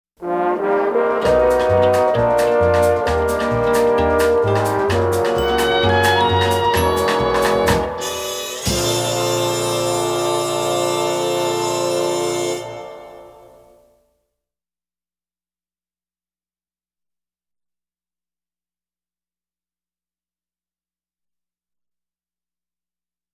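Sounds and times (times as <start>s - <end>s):
tango swing music: 0.4s - 13.6s.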